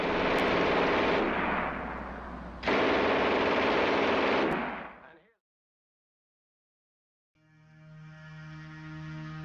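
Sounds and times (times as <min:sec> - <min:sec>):
machine gun firing, buzzsaw-like: 0:00.0 - 0:05.1.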